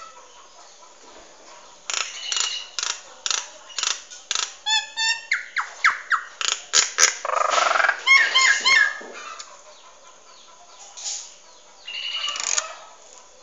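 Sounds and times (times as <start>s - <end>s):
Nias hill myna chattering: 1.7s - 10.0s.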